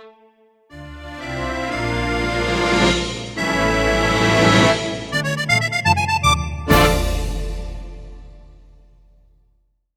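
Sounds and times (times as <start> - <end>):
accordions playing: 0.0 - 8.7.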